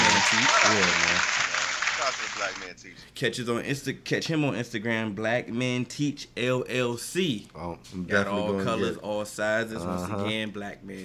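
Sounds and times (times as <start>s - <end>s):
round of applause: 0.0s - 2.7s
speech: 2.1s - 11.0s.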